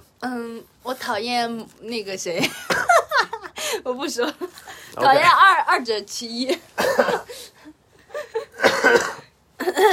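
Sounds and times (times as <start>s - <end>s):
speech: 0.2s - 3.0s, 3.7s - 7.6s
harsh raspy coughs: 6.8s - 7.4s, 8.5s - 9.9s.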